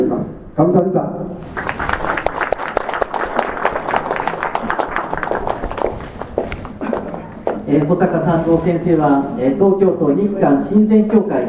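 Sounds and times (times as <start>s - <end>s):
speech: 0.6s - 1.8s, 7.7s - 11.4s
audience applause at a formal ceremony: 1.4s - 8.3s.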